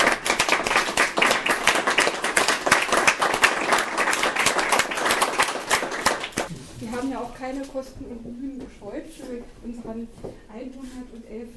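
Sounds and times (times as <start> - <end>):
applause: 0.0 - 6.5
speech: 7.4 - 11.5.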